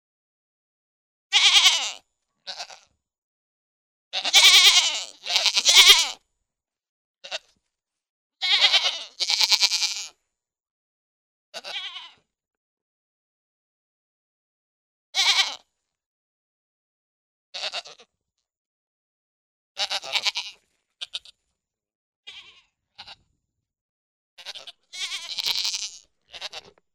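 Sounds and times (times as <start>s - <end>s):
goat giving wavering nasal bleats: 1.3s - 2.9s, 4.2s - 6.2s, 7.2s - 7.5s, 8.4s - 10.2s, 11.6s - 12.2s, 15.2s - 15.7s, 17.6s - 18.1s, 19.8s - 21.4s, 22.3s - 23.2s, 24.4s - 26.8s.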